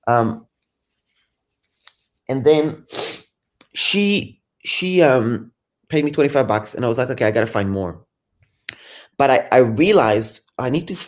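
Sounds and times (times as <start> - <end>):
speech: 0.0 - 0.5, 2.3 - 3.0, 3.7 - 8.1, 8.7 - 11.0
person blowing nose: 2.8 - 3.3.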